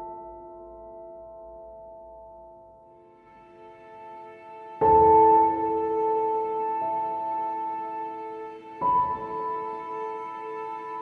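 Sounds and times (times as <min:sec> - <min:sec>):
orchestral music: 0:02.9 - 0:10.9.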